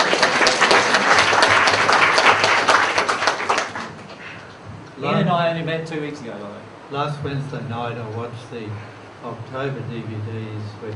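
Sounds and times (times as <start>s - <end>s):
audience clapping: 0.0s - 4.6s
speech: 5.5s - 10.9s.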